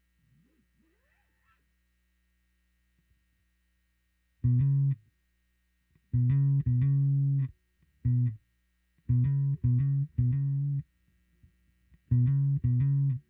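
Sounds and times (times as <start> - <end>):
bass: 4.3 - 5.2, 5.9 - 13.2.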